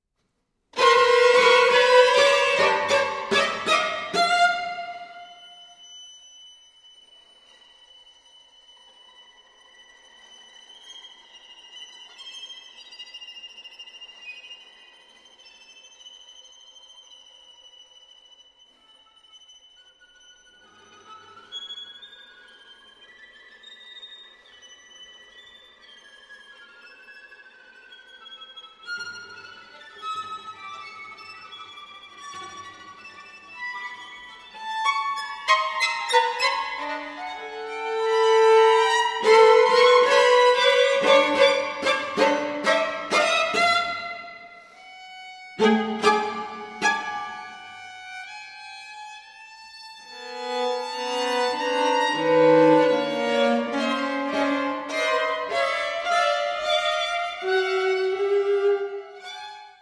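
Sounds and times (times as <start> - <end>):
string quartet: 0.8 - 6.1, 7.0 - 59.8.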